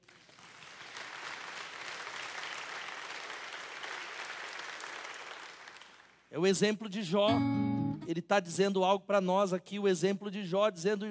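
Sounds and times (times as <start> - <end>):
crowd clapping: 0.0 - 6.3
speech: 6.3 - 11.1.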